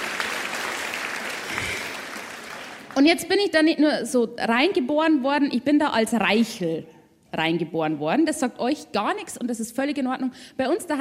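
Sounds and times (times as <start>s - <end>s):
audience applause: 0.0s - 3.0s
speech: 3.0s - 10.9s.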